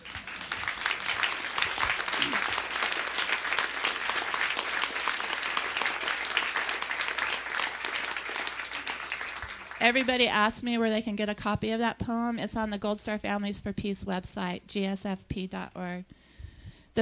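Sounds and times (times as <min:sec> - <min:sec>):
audience applause: 0:00.0 - 0:10.2
speech: 0:09.8 - 0:16.2.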